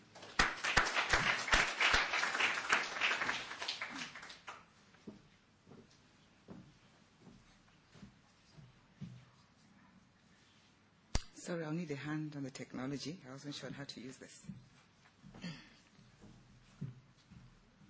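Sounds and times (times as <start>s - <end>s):
audience applause: 0.0s - 4.6s
faint scattered claps and knocks: 0.1s - 4.6s
speech: 11.5s - 14.7s.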